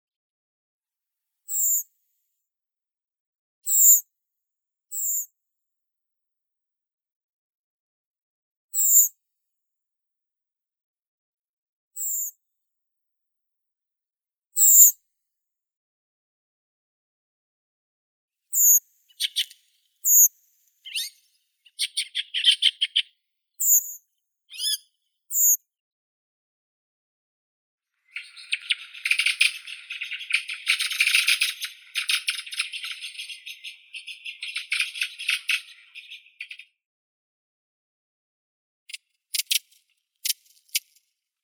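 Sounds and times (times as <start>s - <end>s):
redwing Turdus iliacus calling: 19.1s - 20.2s, 20.8s - 23.0s, 28.1s - 36.7s.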